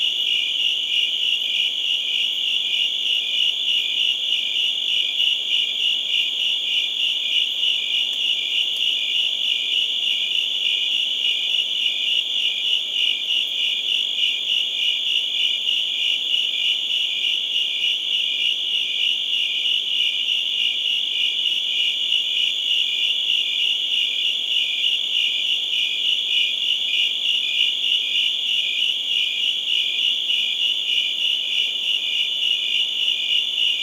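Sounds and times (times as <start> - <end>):
crickets chirping: 0.0 - 33.8.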